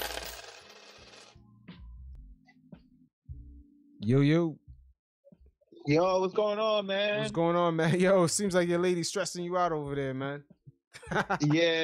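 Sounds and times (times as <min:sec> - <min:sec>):
coins pouring and clattering: 0:00.0 - 0:01.4
speech: 0:04.0 - 0:04.6, 0:05.8 - 0:11.8
laughter: 0:11.0 - 0:11.8.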